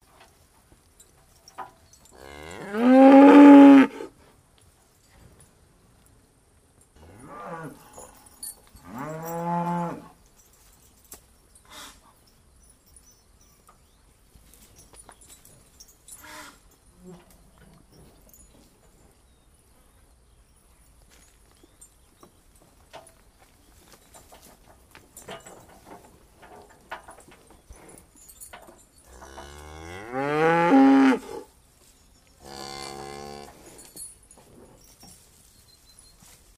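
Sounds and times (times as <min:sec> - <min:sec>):
cows: 0:01.2 - 0:04.3, 0:07.0 - 0:10.4, 0:11.6 - 0:12.3, 0:14.6 - 0:19.2, 0:20.5 - 0:36.5.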